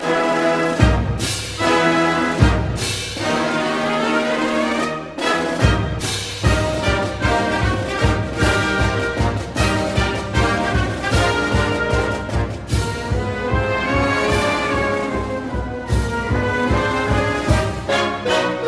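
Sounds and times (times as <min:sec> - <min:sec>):
song: 0:00.0 - 0:18.6.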